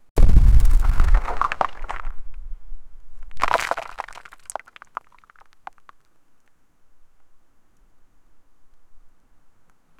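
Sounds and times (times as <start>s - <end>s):
rocks from a gigantic rock cliff: 0.2s - 2.4s, 3.2s - 6.2s.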